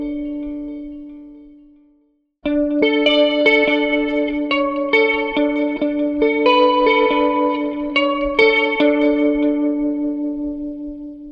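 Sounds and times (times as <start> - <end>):
electric guitar: 0.0 - 11.3.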